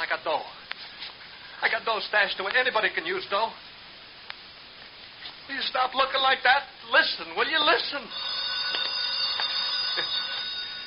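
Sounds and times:
speech: 0.0 - 0.6, 1.6 - 3.7, 5.5 - 8.9
telephone ringing: 8.0 - 10.8.

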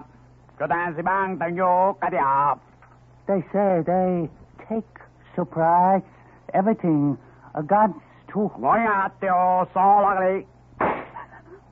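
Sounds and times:
speech: 0.6 - 2.7, 3.3 - 10.5
warning gunshot fired by a bandit leader: 10.8 - 11.2.

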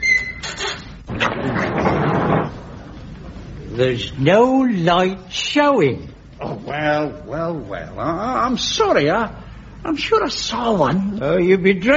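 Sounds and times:
door pushed shut with squeak and scraping rumble: 0.0 - 2.6
speech: 3.8 - 11.9.

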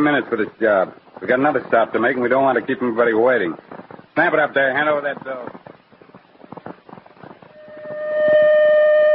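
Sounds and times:
speech: 0.0 - 5.7
citywide alarm siren: 7.6 - 9.1.

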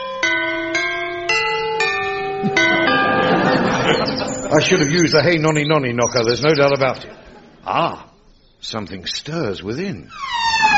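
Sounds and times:
mighty gatehouse bell rung by rope: 0.0 - 5.9
laughter: 2.4 - 5.5, 6.4 - 8.1
speech: 3.9 - 10.7.

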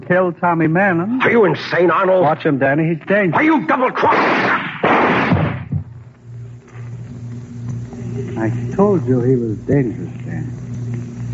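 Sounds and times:
low steady hum: 0.0 - 3.9, 5.2 - 11.3
speech: 0.0 - 4.7, 8.4 - 10.6
gunshots: 4.0 - 5.8.

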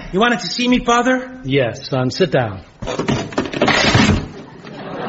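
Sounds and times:
speech: 0.2 - 3.2
old wooden chair breaking under someone: 2.8 - 4.5
laughter: 4.4 - 5.0.

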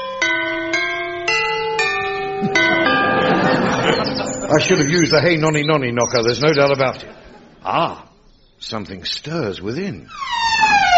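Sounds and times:
large gatehouse bell rung by rope: 0.0 - 6.6
speech: 2.4 - 2.8, 4.5 - 10.4
laughter: 2.4 - 5.4, 6.4 - 8.1.

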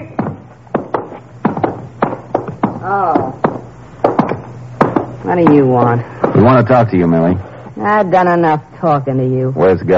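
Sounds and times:
knocking: 0.1 - 6.5
speech: 2.8 - 3.2, 5.3 - 9.9.

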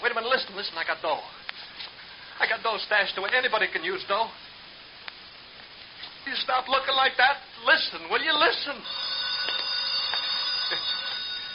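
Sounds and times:
speech: 0.5 - 1.4, 2.4 - 4.5, 6.2 - 9.6
telephone ringing: 8.3 - 11.5.

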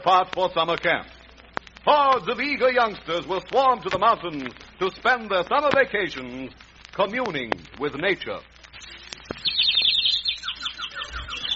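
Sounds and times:
speech: 0.0 - 1.2, 1.8 - 9.4
small bird chirping in a tree: 8.7 - 11.5.

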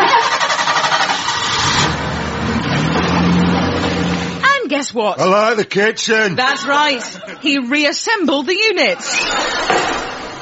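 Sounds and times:
van engine starting and idling: 0.0 - 4.5
speech: 4.9 - 10.0
laughter: 5.4 - 7.9, 8.6 - 10.3.

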